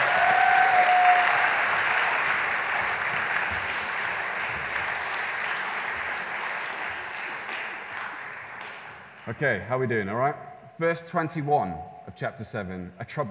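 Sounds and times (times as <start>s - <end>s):
audience applause: 0.0s - 9.4s
speech: 9.3s - 13.2s.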